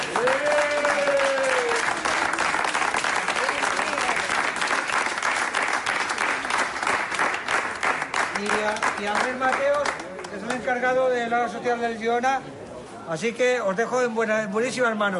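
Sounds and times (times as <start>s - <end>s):
audience applause: 0.0s - 10.7s
speech: 9.0s - 10.0s, 10.6s - 12.5s, 13.1s - 15.1s.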